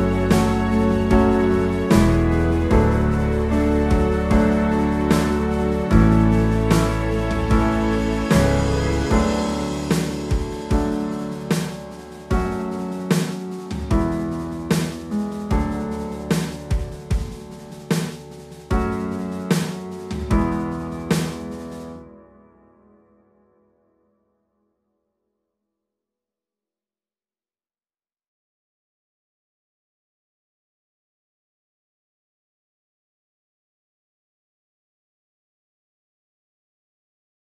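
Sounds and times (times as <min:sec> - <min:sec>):
karaoke instrumental music: 0:00.0 - 0:22.0.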